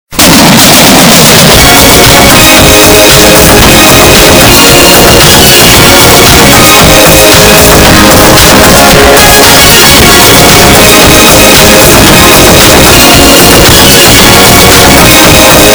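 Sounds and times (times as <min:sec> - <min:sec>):
boosted bass: 0:00.2 - 0:15.7.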